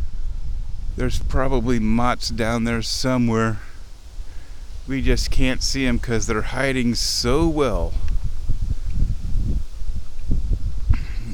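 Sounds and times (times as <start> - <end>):
tall grass rustling: 0.0 - 11.3
wind blowing hard across an open plain of tall grass: 0.0 - 11.3
speech: 1.0 - 3.7, 4.9 - 8.0.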